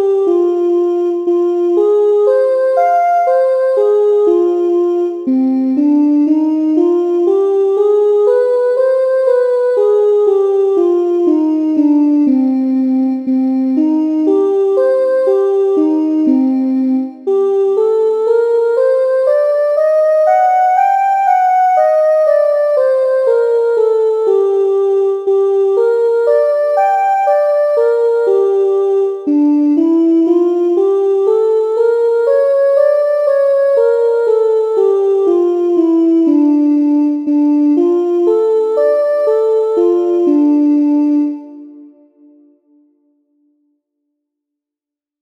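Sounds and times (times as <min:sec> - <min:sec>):
harmonic minor scale exercise: 0:00.0 - 0:43.1.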